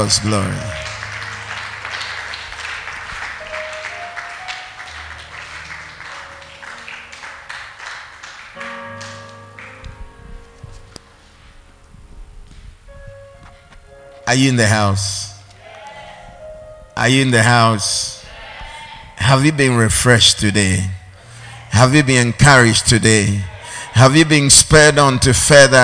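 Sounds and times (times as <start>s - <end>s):
speech: 0.0s - 0.9s, 14.3s - 15.3s, 17.0s - 18.1s, 19.3s - 21.0s, 21.8s - 25.8s
audience clapping: 0.0s - 10.0s.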